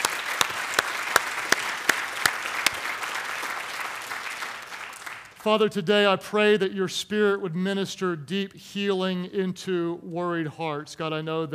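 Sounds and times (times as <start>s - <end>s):
audience clapping: 0.0s - 5.5s
speech: 5.4s - 11.5s.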